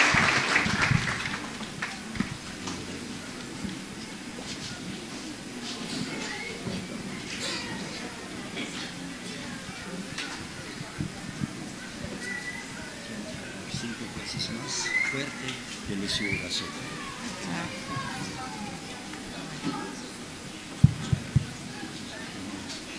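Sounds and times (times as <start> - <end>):
audience applauding: 0.0 - 2.4
faint murmuring voices: 0.0 - 22.9.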